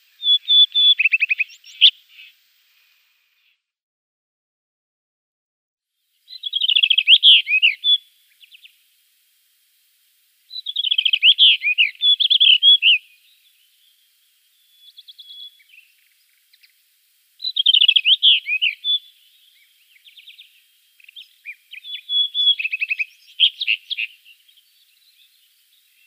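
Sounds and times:
rufous-tailed rock thrush singing: 0.0s - 2.4s, 6.3s - 8.8s, 10.5s - 16.8s, 17.4s - 26.0s.

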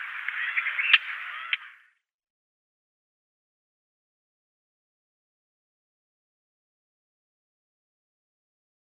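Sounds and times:
Clamorous Reed-Warbler calling: 0.0s - 1.9s.

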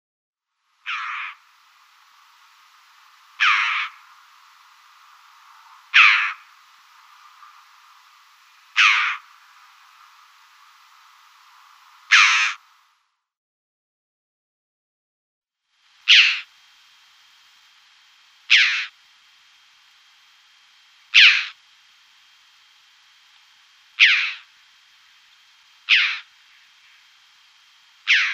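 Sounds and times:
choughs giving continuous harsh grating calls: 0.8s - 12.8s, 16.0s - 16.5s, 18.5s - 19.0s, 21.1s - 21.6s, 23.9s - 27.2s, 27.9s - 28.3s.

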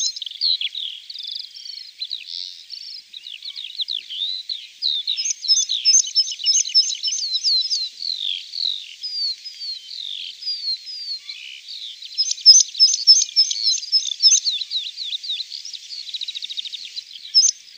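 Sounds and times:
meadow pipit song: 0.0s - 17.7s.

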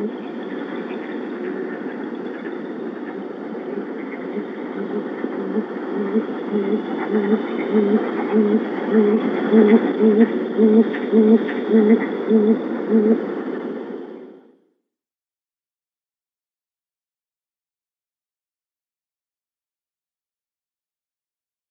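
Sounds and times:
male Great Grey Owl display call: 0.0s - 13.3s.

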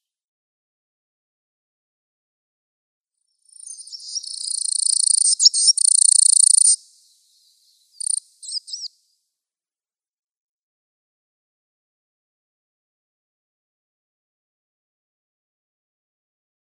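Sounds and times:
Coal Tit calls: 3.4s - 9.1s.

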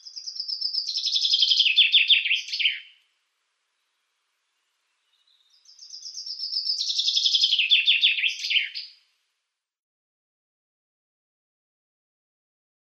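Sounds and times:
common chaffinch song with a downward trill and final flourish: 0.0s - 3.0s, 3.8s - 9.0s.

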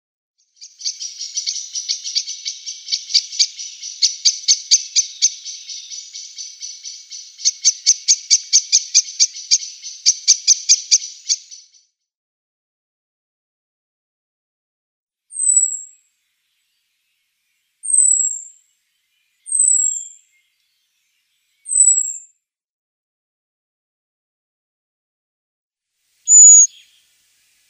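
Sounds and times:
Eurasian blackbird giving metallic chink notes: 0.6s - 11.7s, 26.3s - 27.0s.

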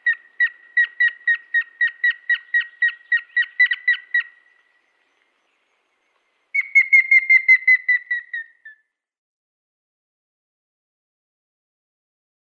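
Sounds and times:
grey-headed woodpecker whistled display notes: 0.1s - 4.6s, 6.5s - 8.8s.

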